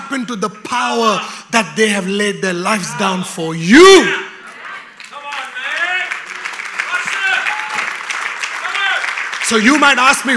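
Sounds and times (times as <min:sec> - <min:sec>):
speech: 0:00.1 - 0:04.3, 0:09.5 - 0:10.3
audience clapping: 0:04.5 - 0:10.3.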